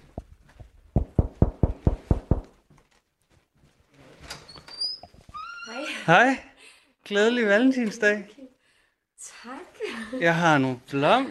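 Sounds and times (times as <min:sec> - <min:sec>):
knocking on a door: 0:01.0 - 0:02.6
soft rustling with a faint squeak: 0:02.8 - 0:05.8
speech: 0:05.8 - 0:06.5, 0:07.1 - 0:08.4, 0:09.4 - 0:11.2.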